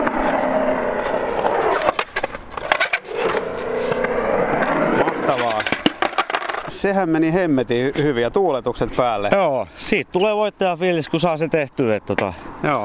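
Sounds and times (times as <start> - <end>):
skateboard rolling downhill: 0.0 - 6.8
speech: 6.8 - 12.8.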